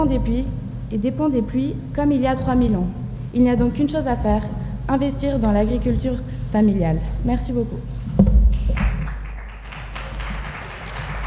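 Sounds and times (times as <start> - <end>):
speech: 0.0 - 8.0
audience applause: 8.5 - 11.2.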